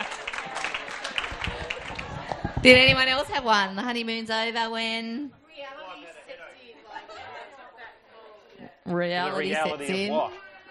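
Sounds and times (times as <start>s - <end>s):
round of audience applause: 0.0s - 3.4s
speech: 2.6s - 5.4s, 8.9s - 10.4s.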